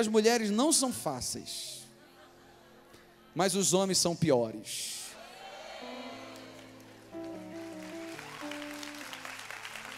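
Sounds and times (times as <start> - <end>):
speech: 0.0 - 1.8, 3.4 - 5.0
women applauding: 5.8 - 9.9.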